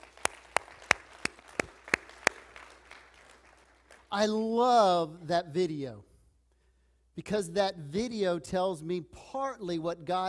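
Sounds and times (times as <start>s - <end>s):
audience clapping: 0.0s - 4.2s
speech: 4.1s - 6.1s, 7.2s - 10.2s.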